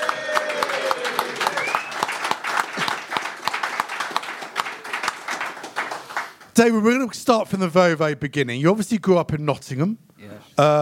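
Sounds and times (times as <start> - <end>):
audience clapping for a former Tottenham manager: 0.0 - 7.0
speech: 6.6 - 10.8.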